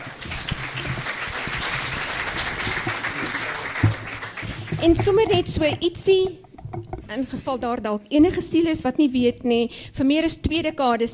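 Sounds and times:
crowd applause: 0:00.0 - 0:05.4
speech: 0:04.8 - 0:11.1.

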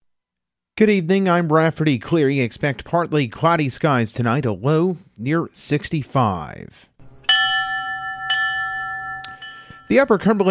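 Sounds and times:
speech: 0:00.8 - 0:06.9, 0:09.9 - 0:10.4
bell strikes at a downtown memorial ceremony for fallen firefighters: 0:07.0 - 0:10.4.

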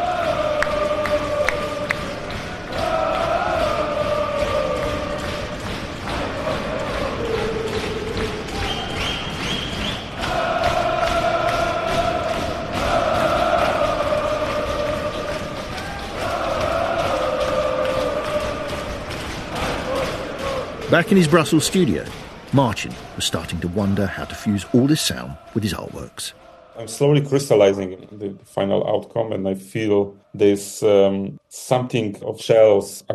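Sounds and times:
large crowd of football fans chanting a droning song: 0:00.0 - 0:28.4
rhythmic slapping on metal: 0:00.6 - 0:26.3
speech: 0:20.9 - 0:33.1.

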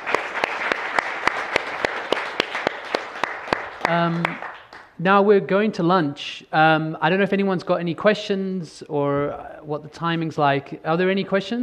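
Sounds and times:
audience applause for panelists: 0:00.0 - 0:04.8
speech: 0:03.9 - 0:11.6.

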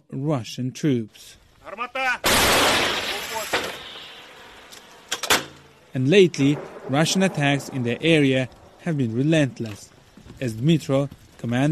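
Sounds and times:
speech: 0:00.2 - 0:02.9, 0:06.0 - 0:11.7
old American M101 howitzer blast: 0:02.2 - 0:04.6, 0:06.1 - 0:09.4.

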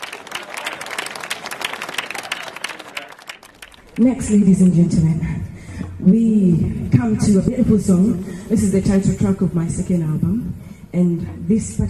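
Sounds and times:
audience applause for a band: 0:00.0 - 0:04.0
speech: 0:04.0 - 0:11.8.

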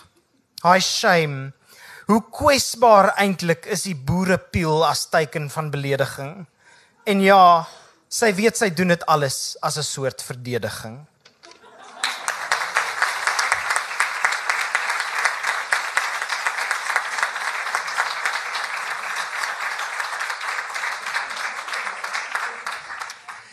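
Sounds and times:
speech: 0:00.6 - 0:06.5, 0:07.1 - 0:11.1
laughter: 0:11.4 - 0:13.0
audience applause: 0:11.8 - 0:23.5.

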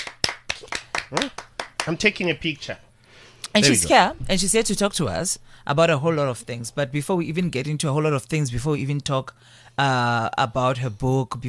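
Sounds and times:
hands clapping: 0:00.0 - 0:02.1
speech: 0:01.1 - 0:02.8, 0:03.5 - 0:11.4.

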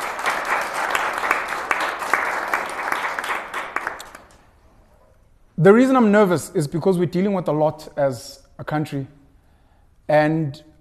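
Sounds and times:
audience applause: 0:00.0 - 0:04.4
speech: 0:05.6 - 0:09.2, 0:10.1 - 0:10.7.

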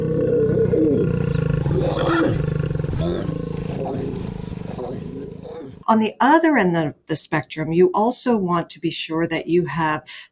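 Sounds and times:
recording of lions roaring and grunting among themselves: 0:00.0 - 0:05.9
speech: 0:05.9 - 0:10.2.

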